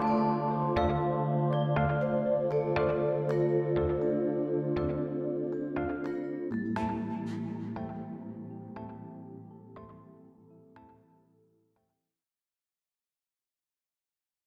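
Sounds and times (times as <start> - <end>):
chill house music: 0.0 - 11.0.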